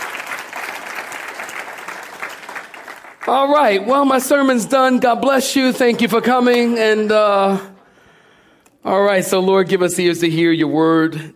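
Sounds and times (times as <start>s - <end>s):
audience clapping: 0.0s - 4.6s
speech: 3.3s - 7.7s, 8.8s - 11.3s.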